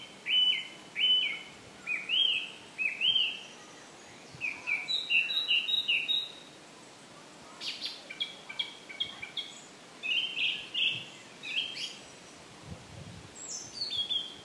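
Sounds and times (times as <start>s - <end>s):
bird singing: 0.0s - 6.5s, 7.5s - 12.4s, 13.4s - 14.4s.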